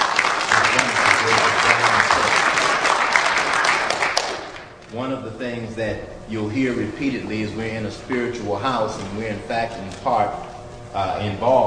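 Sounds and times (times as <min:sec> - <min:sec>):
round of applause: 0:00.0 - 0:04.7
speech: 0:05.0 - 0:11.6.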